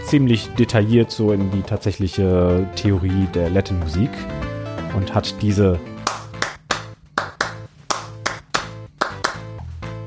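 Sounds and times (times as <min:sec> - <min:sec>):
speech: 0:00.1 - 0:05.9
hand claps in 3-2 clave rhythm: 0:06.0 - 0:09.6.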